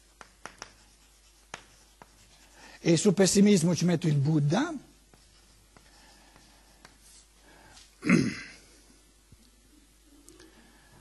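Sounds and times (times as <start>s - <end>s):
handwriting during a lecture: 0.0s - 2.6s, 5.1s - 7.3s
speech: 2.8s - 4.9s.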